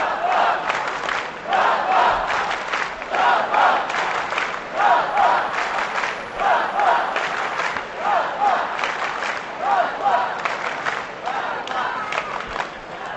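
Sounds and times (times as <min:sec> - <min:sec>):
stadium crowd chanting: 0:00.0 - 0:13.1.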